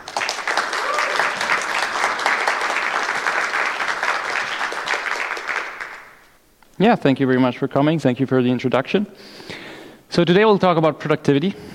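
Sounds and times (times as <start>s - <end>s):
conference audience applause welcoming a speaker to a game development talk: 0.0s - 6.2s
speech: 6.8s - 9.5s, 10.2s - 11.7s.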